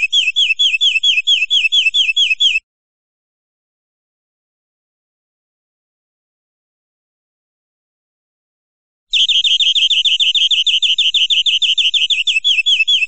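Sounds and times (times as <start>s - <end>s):
European greenfinch buzzy trill: 0.0s - 2.6s, 9.1s - 13.0s.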